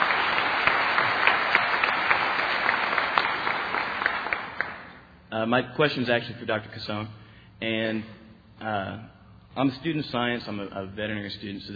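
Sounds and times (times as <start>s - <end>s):
audience applause: 0.0s - 5.0s
speech: 5.4s - 11.7s.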